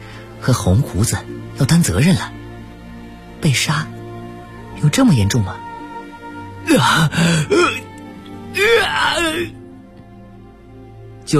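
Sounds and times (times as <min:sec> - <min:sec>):
speech: 0:00.4 - 0:02.4, 0:03.4 - 0:04.0, 0:04.8 - 0:05.6, 0:06.7 - 0:07.8, 0:08.6 - 0:09.6
agonized heart-wrenching wail of pain from a room: 0:08.6 - 0:09.5.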